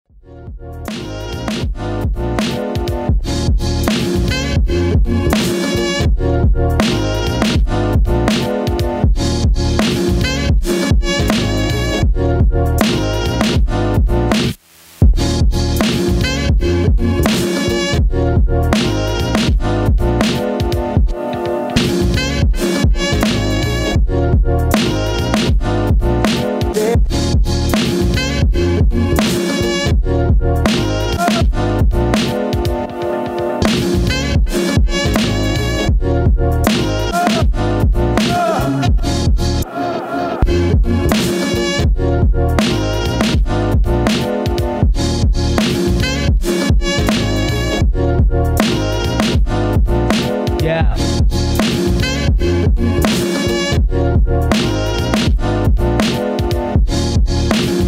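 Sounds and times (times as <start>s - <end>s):
bonus drum beat: 0.9s - 39.5s, 40.4s - 57.8s.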